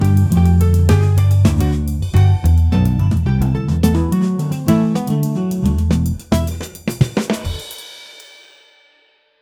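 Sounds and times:
modern instrumental music: 0.0s - 7.1s.

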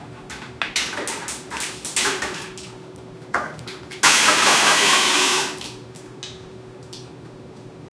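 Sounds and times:
two men pouring epoxy in a room: 4.0s - 5.8s.

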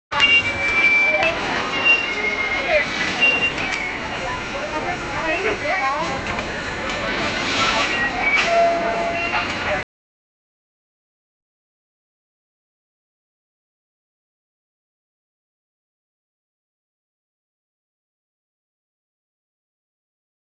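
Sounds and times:
market sounds: 0.1s - 9.8s.

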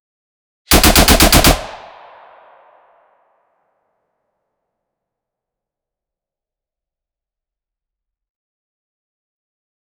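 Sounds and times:
firearms firing: 0.7s - 2.8s.

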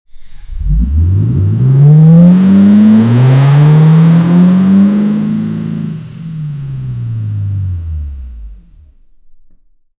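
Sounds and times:
Ford F150 Raptor engine: 0.2s - 9.0s.

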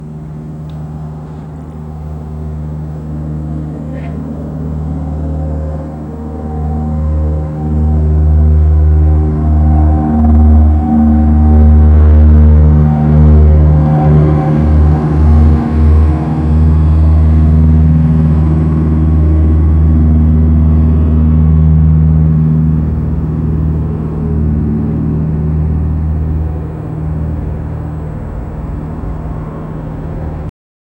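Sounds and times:
airliner taking off: 0.0s - 30.5s.

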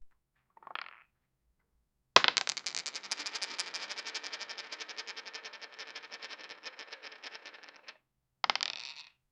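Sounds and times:
dice rolling: 0.6s - 1.1s, 2.2s - 9.1s.

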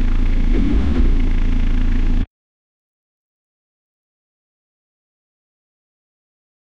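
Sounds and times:
fictional diesel engine cold start: 0.1s - 2.2s.

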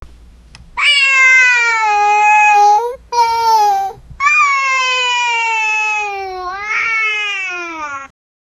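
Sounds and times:
child making happy sounds: 1.6s - 8.1s.

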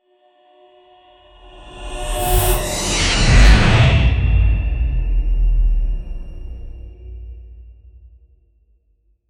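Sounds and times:
slow motion reality warp effect: 1.6s - 7.2s.

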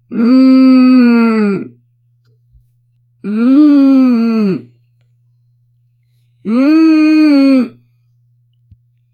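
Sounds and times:
person humming: 0.0s - 1.8s, 3.2s - 4.8s, 6.4s - 7.8s.

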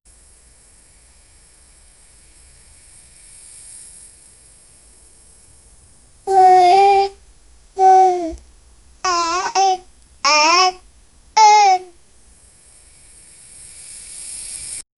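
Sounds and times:
tense repetitive baby sounds: 6.2s - 7.2s, 7.8s - 8.4s, 9.0s - 12.0s.

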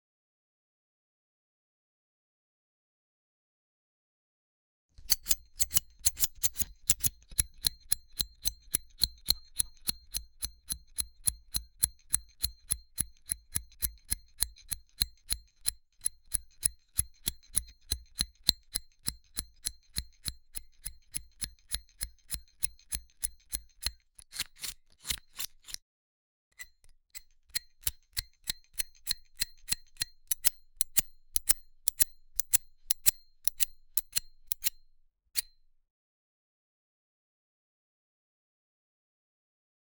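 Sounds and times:
ASMR haircut simulation with scissors cutting hair: 5.0s - 25.8s, 26.6s - 34.8s.

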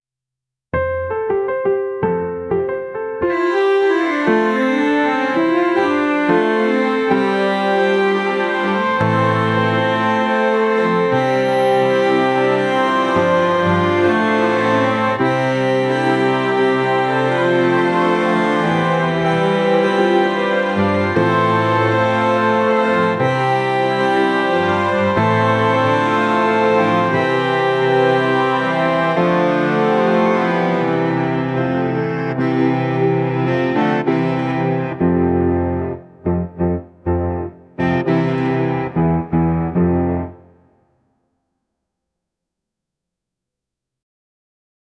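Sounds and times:
music: 0.7s - 41.7s.

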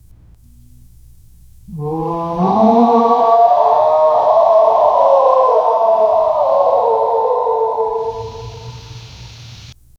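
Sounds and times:
distant Tyrannosaurus rex: 1.7s - 9.4s.

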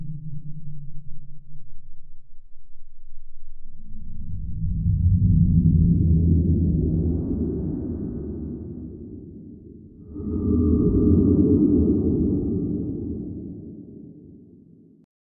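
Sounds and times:
vast subterranean cave ambience: 3.9s - 14.8s.

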